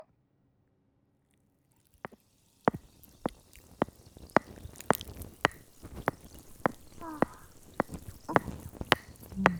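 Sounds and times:
carbonated cotton swab: 1.8 - 9.5
cream being handled: 2.0 - 9.5
tapping: 2.0 - 9.5.

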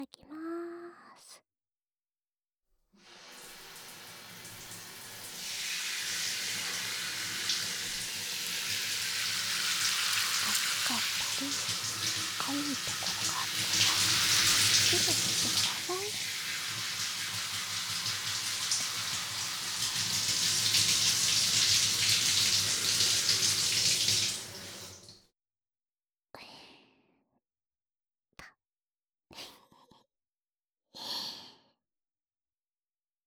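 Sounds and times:
shower water spraying: 3.1 - 25.2.

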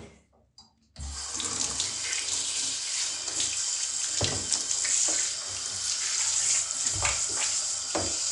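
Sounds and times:
tap water rinsing away clumps of hair: 1.0 - 8.3
knocks and splashes: 4.2 - 5.2, 6.9 - 8.2.

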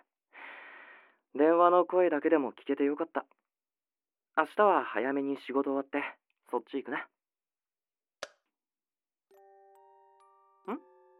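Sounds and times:
speech: 1.4 - 3.5, 4.4 - 7.2, 10.6 - 10.9
music box playing: 9.3 - 11.1.

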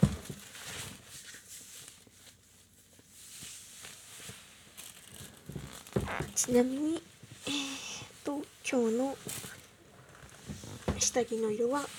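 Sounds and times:
chair creaking as someone shifts: 4.8 - 6.7, 9.2 - 11.1
speech: 6.1 - 7.7, 8.7 - 9.4, 11.0 - 11.9.

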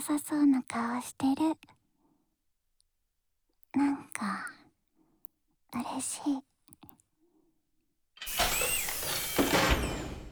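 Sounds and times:
speech: 0.0 - 1.8, 3.7 - 4.6, 5.7 - 6.5
door creaking open: 8.2 - 10.2.

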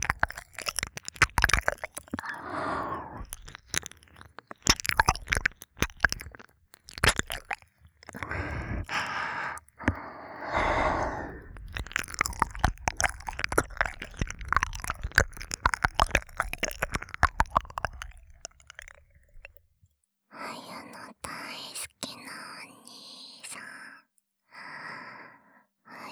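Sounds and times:
ASMR ear licking sounds: 0.0 - 19.6.

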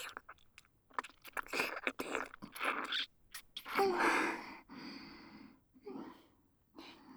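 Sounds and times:
kissing: 0.0 - 4.2
ear licking: 0.0 - 4.4.

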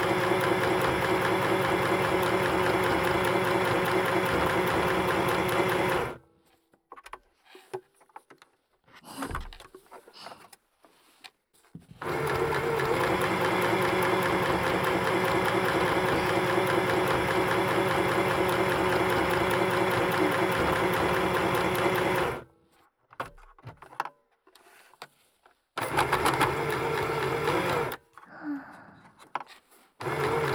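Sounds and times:
sewing machine sewing a costume: 0.0 - 6.2, 12.0 - 22.5, 25.8 - 28.0, 30.0 - 30.5.

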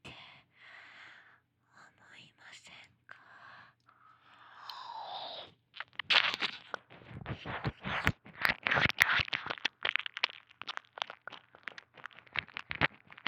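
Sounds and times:
ear licking sounds: 5.7 - 13.2.

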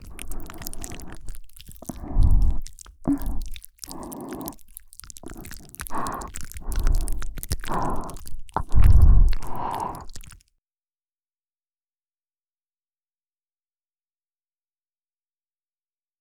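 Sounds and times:
ASMR ear licking: 0.0 - 10.4.

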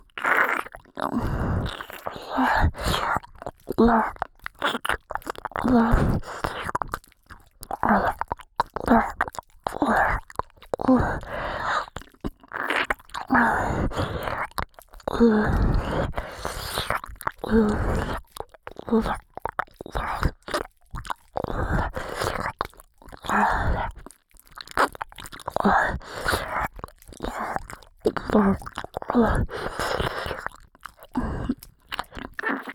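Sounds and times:
ASMR ear licking sounds in the right channel: 0.0 - 32.7.

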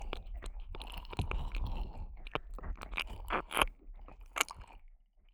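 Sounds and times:
slightly wet ear licking on the right ear: 0.0 - 4.9.

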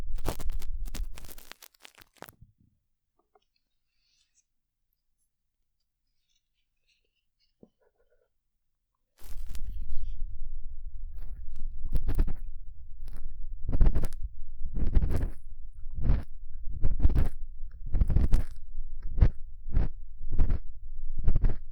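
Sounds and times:
careful realistic ear cleaning sounds: 0.1 - 2.3, 9.2 - 21.6.

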